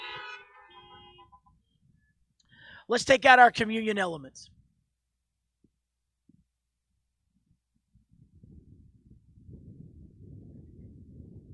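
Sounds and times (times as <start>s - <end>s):
car horns honking: 0.0s - 1.6s
speech: 2.9s - 4.6s.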